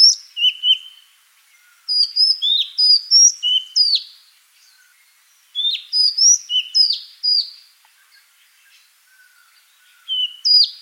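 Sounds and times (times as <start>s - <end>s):
Madagascar magpie-robin song of loud whistled and slurred notes: 0.0s - 10.8s.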